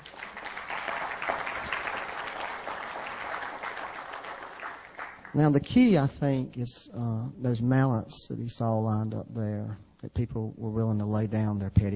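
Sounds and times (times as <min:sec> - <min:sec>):
crowd applauding: 0:00.0 - 0:05.6
speech: 0:05.4 - 0:11.9.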